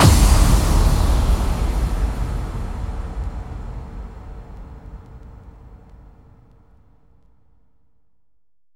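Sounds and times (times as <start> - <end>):
bass drum FX kicks: 0.0 - 5.8.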